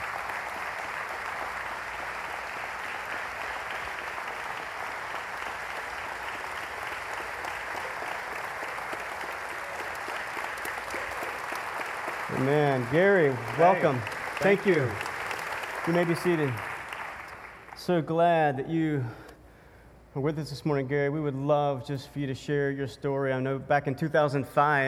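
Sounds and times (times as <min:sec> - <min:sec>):
church congregation applauding to welcome a pastor during a morning service: 0:00.1 - 0:17.7
speech: 0:12.4 - 0:15.1, 0:15.9 - 0:16.7, 0:17.9 - 0:19.2, 0:20.1 - 0:24.8.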